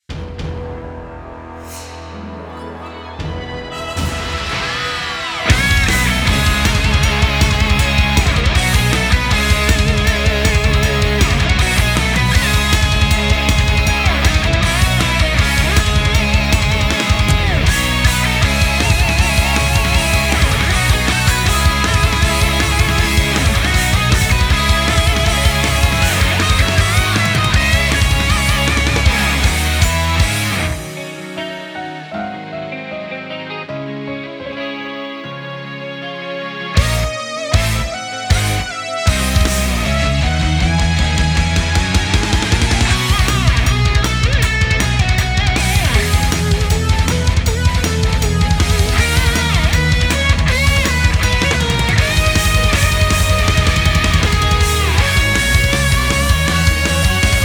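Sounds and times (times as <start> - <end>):
instrumental arrangement: 1.0 - 57.4.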